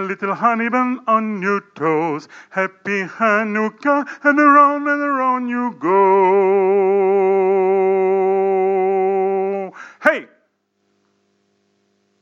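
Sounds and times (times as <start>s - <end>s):
soprano singing a Hanukkah dance song: 0.0s - 9.8s.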